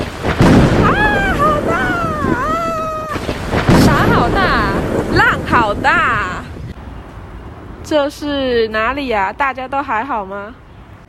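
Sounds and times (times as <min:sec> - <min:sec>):
thunder: 0:00.0 - 0:06.7
rain: 0:00.0 - 0:06.8
heavy wind: 0:00.0 - 0:11.0
speech: 0:07.9 - 0:10.6.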